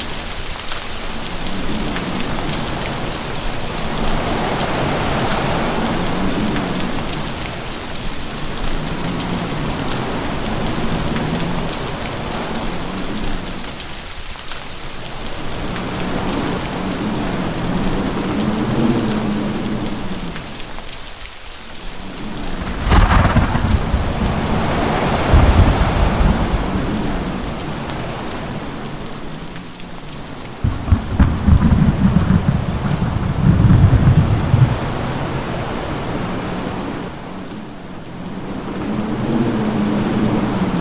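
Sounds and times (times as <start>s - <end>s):
heavy rain: 0.0s - 40.8s
thunder: 22.4s - 27.6s, 30.6s - 35.2s.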